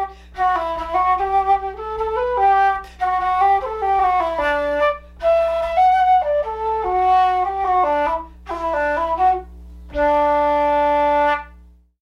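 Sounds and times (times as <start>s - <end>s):
solo flute playing a waltz: 0.0s - 11.6s.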